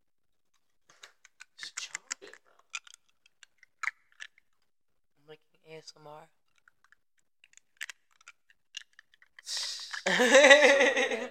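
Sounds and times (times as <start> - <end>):
teeth biting and crunching through a Tootsie Pop hard candy: 1.0 - 4.6, 6.4 - 10.2
speech: 5.8 - 6.4, 10.1 - 11.2
laughter: 10.0 - 11.2.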